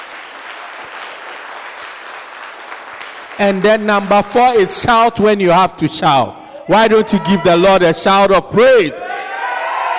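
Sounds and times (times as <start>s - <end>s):
audience clapping hands: 0.0s - 4.7s
speech: 3.4s - 9.1s.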